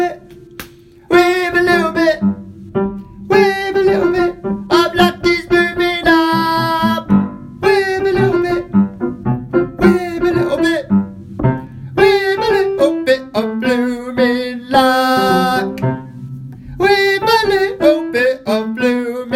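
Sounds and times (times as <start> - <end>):
tenor voice singing: 1.1 - 2.4, 3.3 - 8.8, 9.7 - 11.0, 12.0 - 15.9, 16.8 - 19.3.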